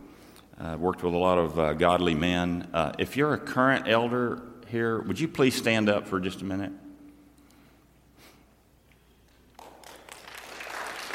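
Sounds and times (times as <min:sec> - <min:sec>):
speech: 0:00.6 - 0:06.8
audience applause: 0:09.6 - 0:11.1.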